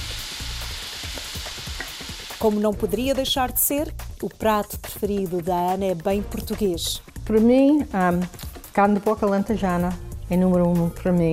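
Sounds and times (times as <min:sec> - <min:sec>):
shrimp sizzling in a hot frying pan: 0:00.0 - 0:03.4
speech: 0:02.4 - 0:11.3.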